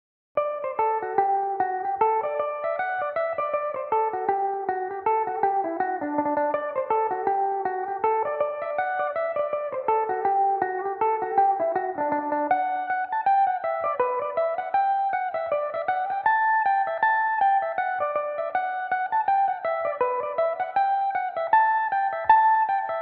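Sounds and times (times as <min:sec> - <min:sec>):
Irish mandolin in D mixolydian: 0:00.4 - 0:23.0.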